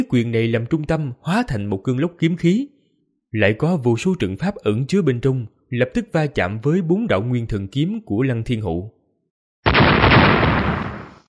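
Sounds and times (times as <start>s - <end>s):
speech: 0.0s - 9.0s
booming explosions sound effect: 9.7s - 11.2s.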